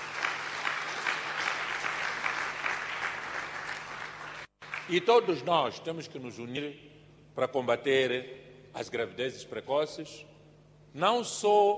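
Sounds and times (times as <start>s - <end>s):
applause: 0.0s - 5.3s
speech: 4.9s - 10.3s, 10.9s - 11.7s.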